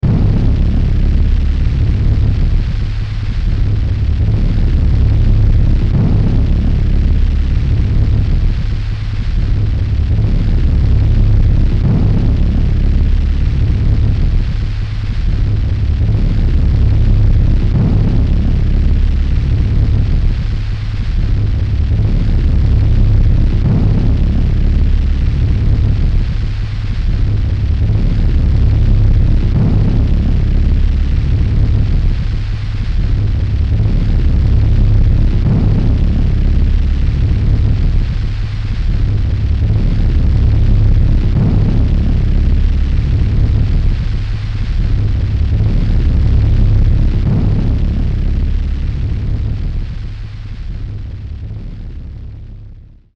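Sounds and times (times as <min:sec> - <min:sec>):
fire: 0:00.0 - 0:53.1.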